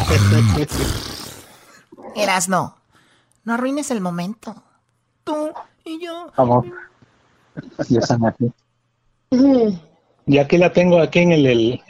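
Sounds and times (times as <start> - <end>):
person snoring: 0.0 - 1.8
speech: 0.1 - 1.1, 2.2 - 2.8, 3.4 - 4.6, 5.3 - 6.9, 7.6 - 8.6, 9.3 - 11.8.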